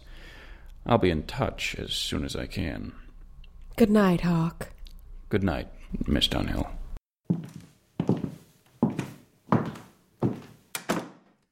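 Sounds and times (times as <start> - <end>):
speech: 0.8 - 3.0, 3.8 - 4.7, 5.3 - 6.8
stiletto heels knocking on creaky hardwood stairs: 7.3 - 11.4.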